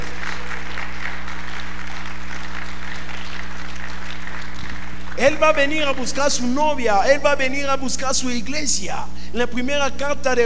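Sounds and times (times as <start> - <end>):
audience applause: 0.0 - 5.2
low constant electrical hum: 0.0 - 10.4
speech: 5.2 - 10.4.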